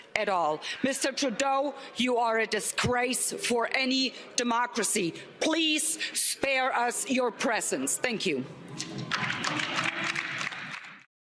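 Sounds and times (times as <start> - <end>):
speech: 0.2 - 9.7
applause in parliament: 8.8 - 11.1.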